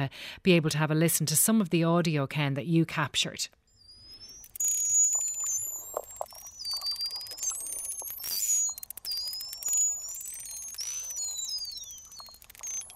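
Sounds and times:
speech: 0.0 - 3.6
marine mammal whistles: 3.8 - 12.9
crackly clicks: 4.1 - 12.9.

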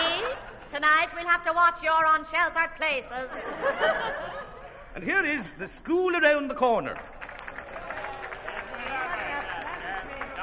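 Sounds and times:
speech: 0.8 - 4.4, 5.0 - 7.1
laughter: 3.2 - 4.9
sustained applause from a large crowd: 6.9 - 10.4.

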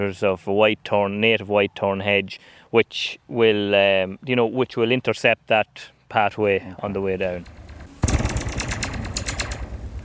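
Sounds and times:
speech: 0.0 - 7.6
taut fence wire struck twanging: 7.4 - 10.0.

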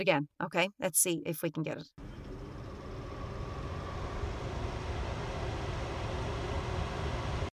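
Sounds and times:
speech: 0.0 - 2.1
kitchen extractor fan running: 2.0 - 7.5.

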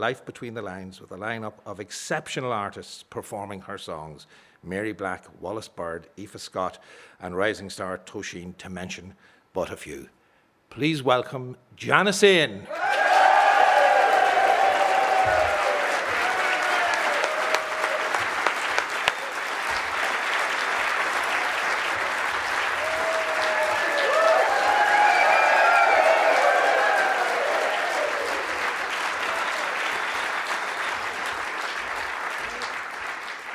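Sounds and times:
speech: 0.0 - 12.9
audience clapping and applauding: 12.7 - 33.5.

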